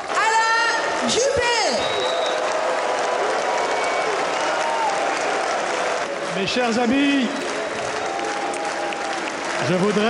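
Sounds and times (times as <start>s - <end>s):
audience clapping at a political rally: 0.0s - 10.0s
speech: 1.0s - 1.8s, 6.4s - 7.4s, 9.7s - 10.0s
audience whistling at a Les Républicains political rally at La Villette: 1.6s - 2.6s, 3.5s - 5.2s, 7.3s - 9.4s
crowd voices at a political rally: 4.0s - 10.0s.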